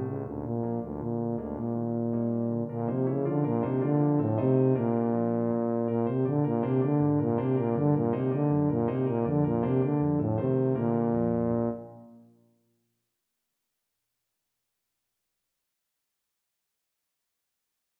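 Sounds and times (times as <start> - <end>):
tuba: 0.0 - 12.4.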